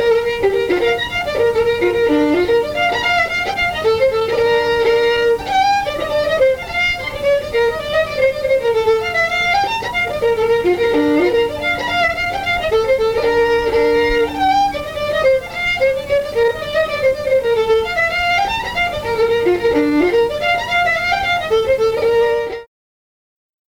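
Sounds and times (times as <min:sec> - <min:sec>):
fiddle: 0:00.0 - 0:22.7.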